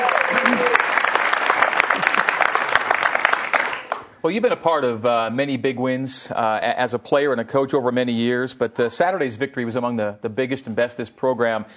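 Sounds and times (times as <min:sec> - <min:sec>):
audience applause: 0:00.0 - 0:04.1
speech: 0:04.2 - 0:11.7.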